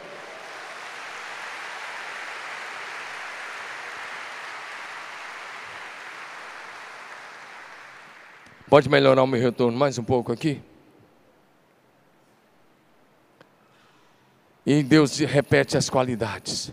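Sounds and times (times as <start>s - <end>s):
audience applause: 0.0s - 8.8s
speech: 8.7s - 10.7s, 14.6s - 16.7s.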